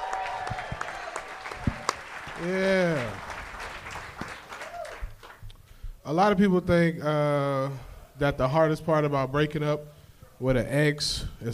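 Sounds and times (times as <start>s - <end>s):
crowd noise at a live comedy show: 0.0s - 5.0s
audience applause at a live comedy show: 0.0s - 5.4s
speech: 2.4s - 3.2s, 6.1s - 11.5s.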